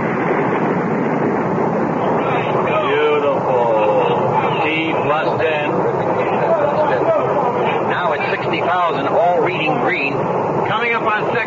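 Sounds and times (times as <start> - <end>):
rocket engines firing at launch: 0.0 - 11.4.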